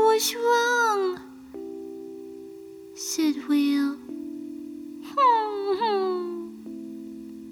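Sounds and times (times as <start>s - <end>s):
speech: 0.2s - 0.8s
character whimpering: 5.2s - 6.5s.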